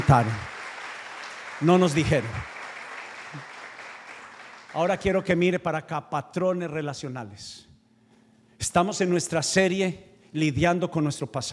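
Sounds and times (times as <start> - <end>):
audience applauding: 0.0 - 5.2
speech: 0.1 - 0.5, 1.6 - 2.5, 4.7 - 7.7, 8.6 - 11.5.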